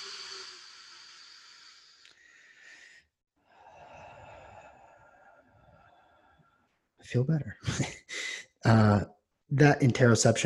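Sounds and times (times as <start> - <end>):
deep breath: 0.0 - 6.8
speech: 7.1 - 8.0, 8.6 - 10.4.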